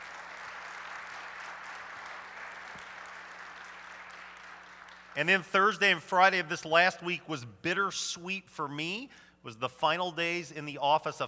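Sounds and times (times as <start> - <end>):
audience applause welcoming a couple celebrating 45 years of marriage: 0.0 - 5.2
speech: 5.2 - 11.2.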